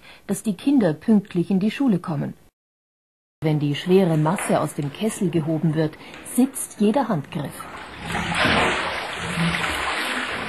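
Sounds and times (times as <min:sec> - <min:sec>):
speech: 0:00.3 - 0:02.4, 0:03.4 - 0:08.6
whey draining from cheese moulds: 0:07.5 - 0:10.4.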